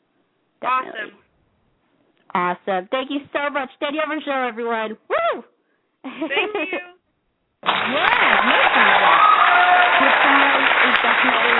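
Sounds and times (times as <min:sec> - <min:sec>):
speech: 0:00.6 - 0:01.2, 0:02.3 - 0:06.9, 0:07.9 - 0:09.0
audience applause: 0:07.6 - 0:11.5.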